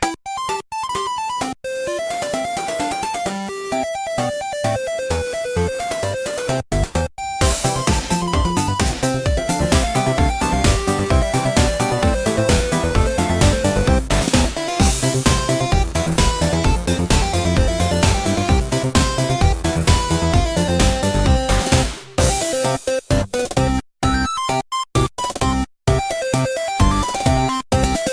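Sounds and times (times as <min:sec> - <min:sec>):
retro chiptune game music: 0:00.0 - 0:28.1.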